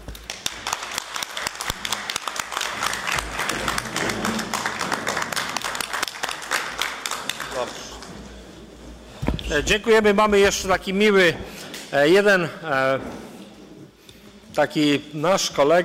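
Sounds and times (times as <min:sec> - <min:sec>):
crowd applauding: 0:00.0 - 0:08.4
speech: 0:09.5 - 0:13.3, 0:14.6 - 0:15.8.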